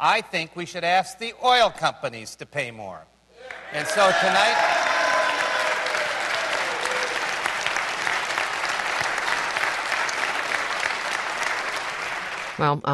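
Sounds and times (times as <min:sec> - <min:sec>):
speech: 0:00.0 - 0:05.0, 0:12.6 - 0:12.9
crowd applauding: 0:03.4 - 0:12.6.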